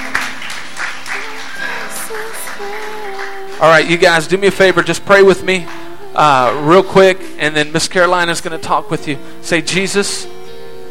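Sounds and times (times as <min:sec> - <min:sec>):
audience clapping: 0:00.0 - 0:06.6
speech: 0:03.6 - 0:10.4.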